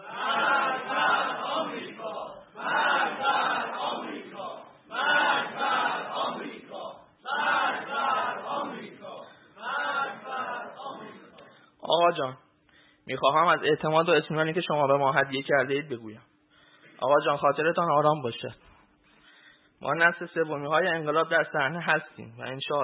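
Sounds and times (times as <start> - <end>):
large crowd chanting a slogan in unison: 0.0 - 11.5
speech: 13.1 - 16.3, 17.0 - 18.6, 19.8 - 22.8.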